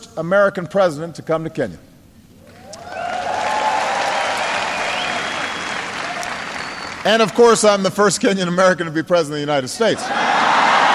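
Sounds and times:
speech: 0.2 - 1.9, 7.0 - 10.3
crowd applauding and cheering: 2.5 - 7.8, 10.2 - 10.9.

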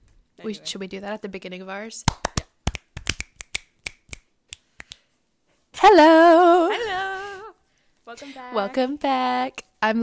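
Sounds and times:
speech: 0.4 - 2.3, 5.9 - 7.0, 8.1 - 10.0
hand claps: 2.1 - 5.0.

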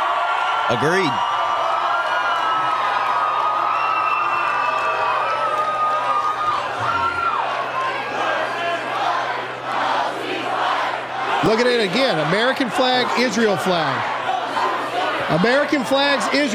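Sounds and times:
crowd cheering at rally: 0.0 - 16.5
speech: 0.7 - 1.3, 11.5 - 14.2, 15.3 - 16.5
crowd chanting at rally: 6.7 - 16.5.

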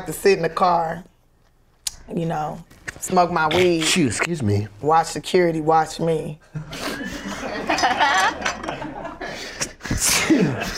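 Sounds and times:
speech: 0.0 - 1.1, 2.1 - 7.2
laughter: 6.6 - 9.6
sneeze: 9.9 - 10.6.

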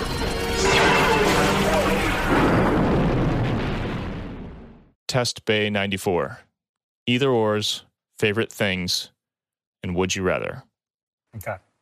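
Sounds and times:
sci-fi weapon test firing in a test bay: 0.0 - 4.8
speech: 5.1 - 6.5, 7.1 - 9.1, 9.8 - 10.7, 11.3 - 11.6.

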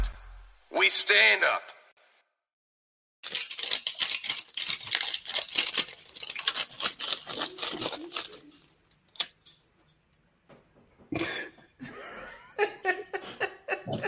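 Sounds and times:
speech: 0.7 - 1.7
envelope being torn open: 3.3 - 9.5
paper rustling: 3.3 - 10.0
laughter: 11.8 - 14.0.

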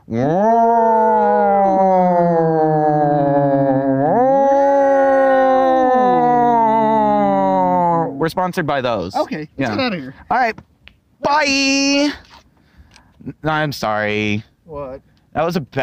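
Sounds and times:
voice imitating an air raid siren: 0.0 - 8.2
speech: 0.1 - 0.8, 8.3 - 10.7, 11.3 - 12.4, 13.4 - 14.5, 15.4 - 15.8.

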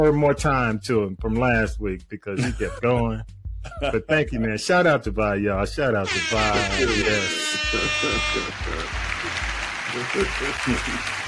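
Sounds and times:
speech: 0.0 - 11.2
laughter: 2.4 - 3.0, 3.6 - 4.1, 6.1 - 11.2
high horn tone: 6.0 - 9.2
low honking bursts: 6.0 - 9.7
clapping sound effect: 8.1 - 11.2.

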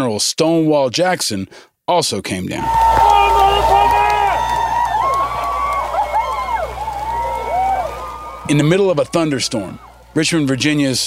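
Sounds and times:
speech: 0.0 - 3.7, 8.5 - 11.0
crowd clapping in Richmond, Virginia: 2.6 - 10.9.

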